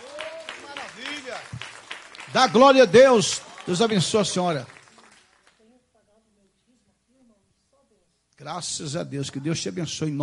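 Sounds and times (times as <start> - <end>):
audience applauding: 0.0 - 5.6
speech: 1.3 - 1.7, 2.3 - 4.8, 8.5 - 10.2.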